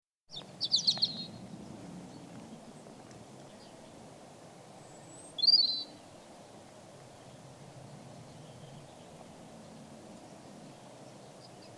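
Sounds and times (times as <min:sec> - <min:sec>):
European robin song of high wavering whistles: 0:00.3 - 0:11.7.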